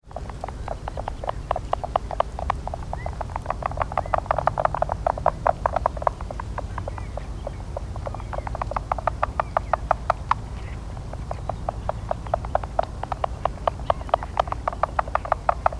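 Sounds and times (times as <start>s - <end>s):
Oregon spotted frog Rana pretiosa clicking call: 0.1s - 15.7s.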